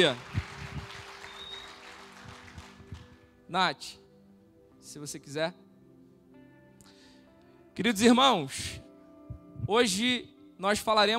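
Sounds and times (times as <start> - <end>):
speech: 0.0 - 0.3, 3.5 - 4.0, 4.9 - 5.6, 7.8 - 8.8, 9.7 - 11.1
audience applause: 0.0 - 3.2.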